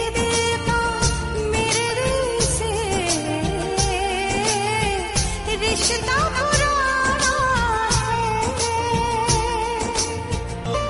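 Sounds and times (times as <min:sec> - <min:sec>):
woman singing a song: 0:00.0 - 0:10.8.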